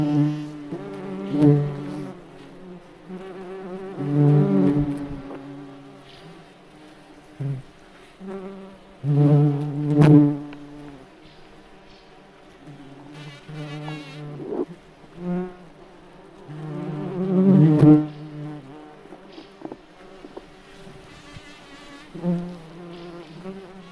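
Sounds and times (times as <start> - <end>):
bumblebee wing buzzing: 0.0 - 23.9.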